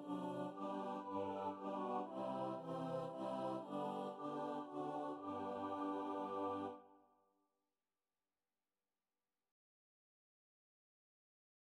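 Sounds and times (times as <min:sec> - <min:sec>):
chorus singing: 0:00.0 - 0:06.8.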